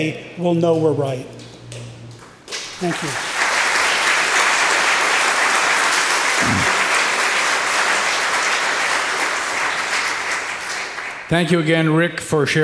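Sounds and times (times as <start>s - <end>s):
speech: 0.0s - 1.4s, 2.8s - 3.3s, 11.3s - 12.6s
audience applause: 2.6s - 11.3s.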